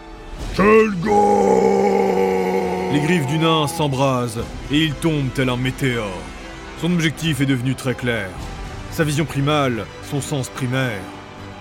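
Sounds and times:
speech: 0.6s - 1.3s, 3.0s - 11.2s
enraged warrior roaring: 0.6s - 4.2s.

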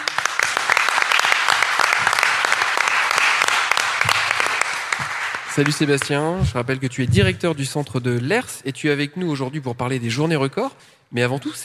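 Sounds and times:
audience applause: 0.0s - 6.4s
speech: 5.6s - 11.6s.

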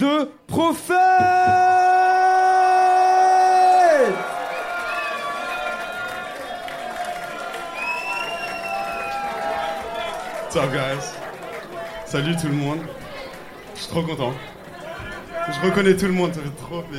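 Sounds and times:
speech: 0.0s - 1.8s, 10.5s - 11.2s, 12.1s - 13.0s, 13.8s - 14.6s, 15.4s - 16.9s
audience cheering: 0.9s - 16.1s
audience applauding: 2.6s - 16.0s.

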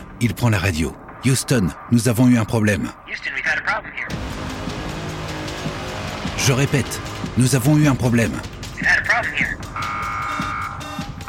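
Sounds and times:
speech: 0.2s - 4.6s, 6.4s - 10.5s
spacecraft alarms ringing: 9.2s - 11.2s.

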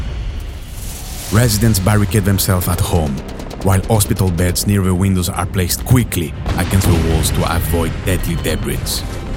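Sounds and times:
explosion roaring: 0.1s - 9.0s
speech: 1.3s - 9.2s.

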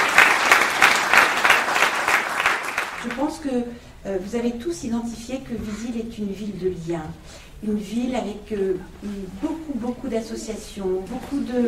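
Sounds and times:
audience applause at a French town event about local associations and volunteering: 0.0s - 3.2s
speech: 3.1s - 11.6s.

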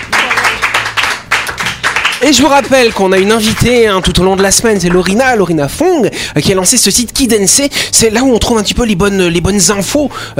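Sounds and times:
group applauding: 0.0s - 5.2s
speech: 2.2s - 10.3s.

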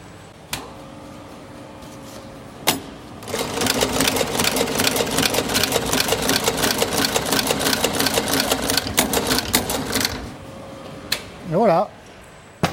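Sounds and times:
sewing machine stitching leather corner seam: 3.2s - 10.3s.

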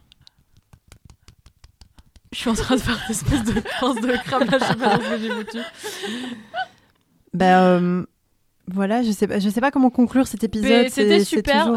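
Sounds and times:
light quick hand clapping: 0.0s - 2.4s
speech: 2.3s - 6.6s, 7.3s - 8.1s, 8.7s - 11.7s
laughter: 2.5s - 6.7s.

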